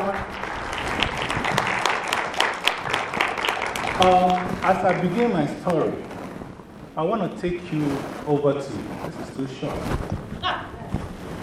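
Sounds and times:
crowd clapping: 0.0 - 6.0
speech: 4.0 - 6.1, 7.0 - 10.3.

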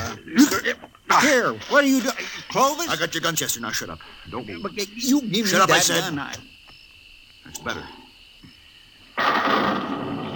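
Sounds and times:
speech: 0.2 - 6.6, 7.5 - 8.0, 9.2 - 9.9
thunder: 9.2 - 10.3.

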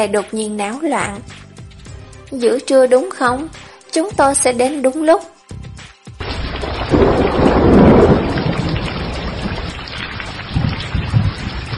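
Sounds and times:
speech: 0.0 - 1.5, 2.3 - 5.3
heavy pouring rain: 6.2 - 11.7
thunderclap with lightning: 6.2 - 11.7.

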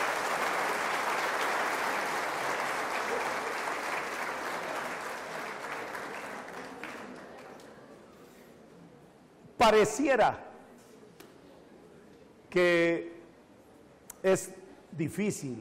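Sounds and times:
audience applause: 0.0 - 7.6
speech: 9.6 - 10.5, 12.6 - 13.1, 14.2 - 15.6.

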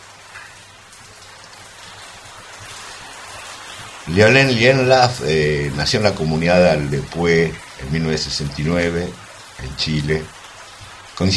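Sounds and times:
steady rain falling in fine drops: 0.0 - 11.3
speech: 4.1 - 10.4, 11.2 - 11.3.

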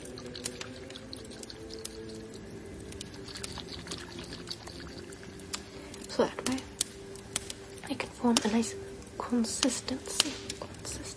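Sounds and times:
oil and water pouring for mixing: 0.0 - 7.9
speech: 6.2 - 6.6, 8.2 - 10.3.

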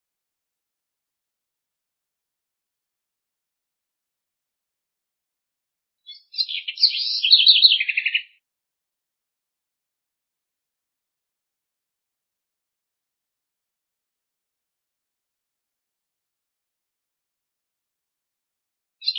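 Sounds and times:
house wren singing: 6.0 - 8.4.

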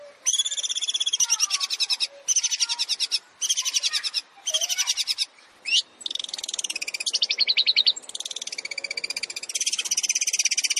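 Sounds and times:
quiet background hiss: 0.0 - 10.7
Long-tailed shrike song: 0.2 - 10.7.

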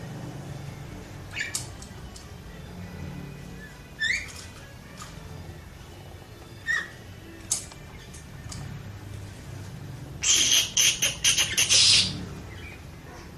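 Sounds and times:
champion Oriental magpie-robin singing: 1.3 - 1.9, 3.6 - 4.6, 6.4 - 8.3, 10.2 - 13.0.

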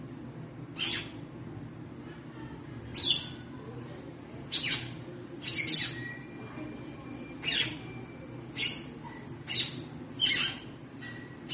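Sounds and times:
faint low hum: 0.0 - 11.5
red-cowled cardinal chirps: 0.8 - 1.2, 4.5 - 6.4, 7.4 - 11.5.

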